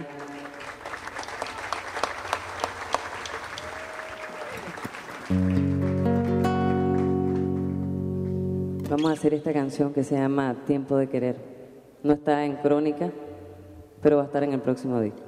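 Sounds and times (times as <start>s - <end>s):
audience applause: 0.0s - 7.9s
speech: 5.3s - 6.0s, 9.0s - 13.3s, 14.0s - 15.2s.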